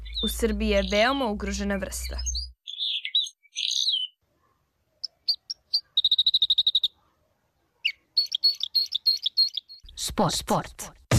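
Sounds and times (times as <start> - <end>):
red crossbill song: 0.0 - 4.2, 5.0 - 7.0, 7.8 - 10.0
speech: 0.2 - 2.4, 10.2 - 11.0.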